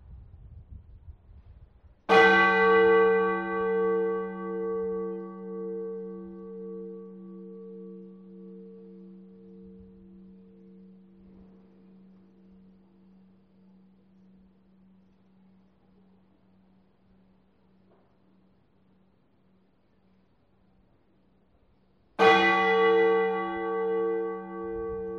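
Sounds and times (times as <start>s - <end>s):
bell: 2.1s - 18.1s, 22.2s - 25.1s.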